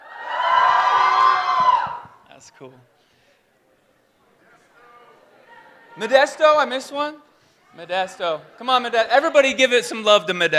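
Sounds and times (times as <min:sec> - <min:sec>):
audience cheering and shouting with high whoops: 0:00.0 - 0:02.2
speech: 0:02.6 - 0:03.0, 0:06.0 - 0:10.5.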